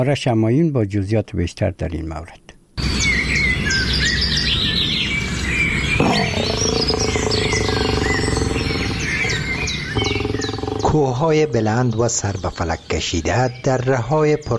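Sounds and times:
speech: 0.0s - 2.5s, 10.9s - 14.5s
birds singing and chirping: 2.8s - 14.5s
deeper tonal drone: 6.3s - 11.2s.

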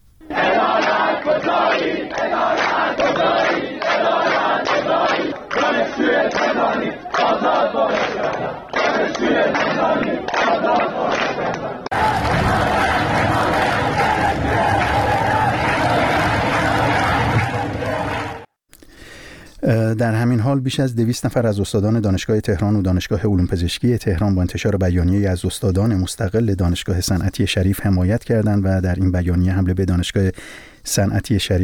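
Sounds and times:
students chanting slogans at a protest rally on a Tehran university campus: 0.3s - 18.5s
speech: 20.0s - 31.6s.

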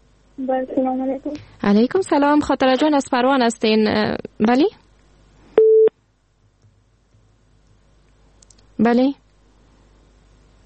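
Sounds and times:
faint noise: 0.0s - 10.6s
speech: 0.4s - 4.8s, 8.8s - 9.2s
phone line busy tone after call-in show call cut off: 5.6s - 5.9s.

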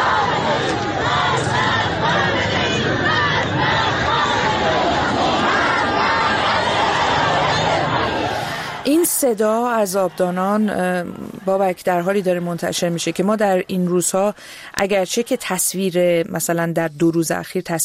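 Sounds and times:
protest crowd chanting slogans against the government: 0.0s - 13.6s
speech: 9.2s - 17.8s.

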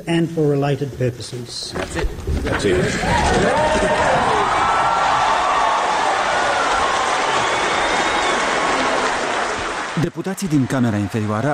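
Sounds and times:
speech: 0.0s - 4.3s, 10.0s - 11.5s
standing ovation clapping in parliament: 3.2s - 11.5s.

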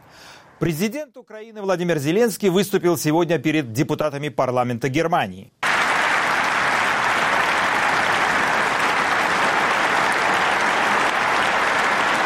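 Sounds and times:
speech: 0.6s - 5.6s
prolonged ovation in the Bundestag: 5.6s - 12.2s.

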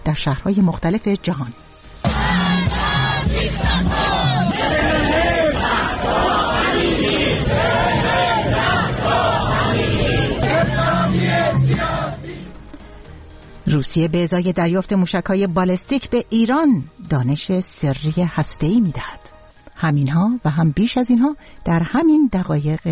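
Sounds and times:
speech: 0.0s - 2.4s, 13.8s - 22.9s
protest crowd chanting slogans: 2.1s - 12.6s.

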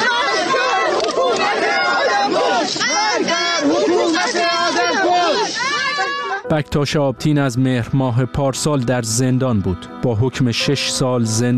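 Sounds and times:
crowd shouting at a funeral: 0.0s - 6.5s
speech: 6.5s - 11.5s.

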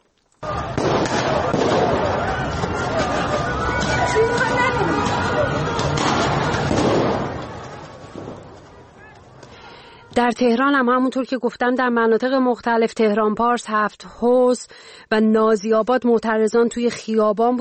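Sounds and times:
gunshots during street protest: 0.4s - 8.6s
speech: 10.2s - 17.5s.

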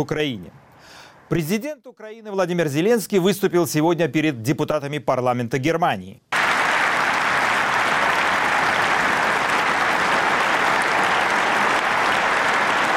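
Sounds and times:
speech: 0.0s - 6.3s
Bundestag members' standing ovation applause: 6.4s - 12.9s.

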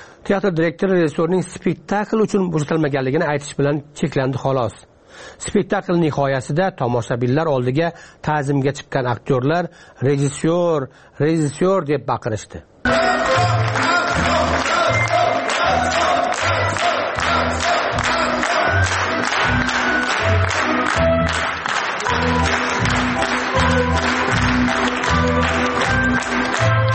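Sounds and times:
speech: 0.3s - 13.8s
theatre audience applauding the director on stage: 12.9s - 26.9s.

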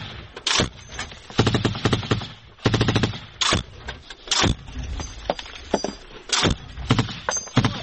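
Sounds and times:
sniper rifle gunfire: 0.0s - 4.6s, 6.3s - 7.8s.

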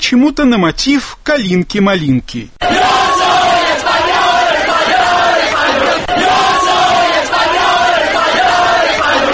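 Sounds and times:
speech: 0.1s - 2.9s
crowd chanting: 2.6s - 9.3s.

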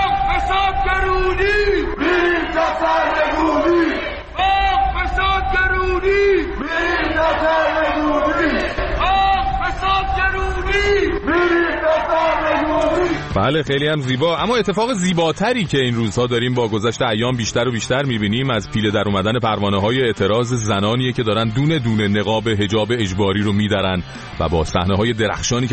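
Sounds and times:
protest crowd chanting slogans: 0.0s - 13.3s
speech: 13.3s - 25.7s.

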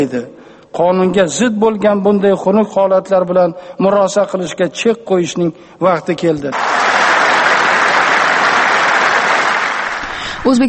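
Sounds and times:
speech: 0.0s - 7.0s, 10.4s - 10.6s
thunderous applause during a presidential speech: 6.5s - 10.4s.

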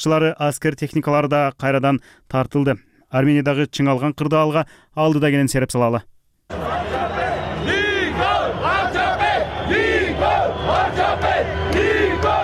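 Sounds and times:
speech: 0.0s - 6.7s
crowd of thousands of demonstrators shouting in a street in Armenia: 6.5s - 12.4s.

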